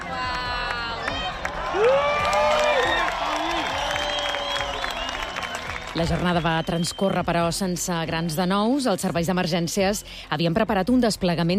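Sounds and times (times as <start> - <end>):
spontaneous crowd cheering during eclipse: 0.0 - 7.4
clapping: 0.6 - 6.9
speech: 6.0 - 11.5.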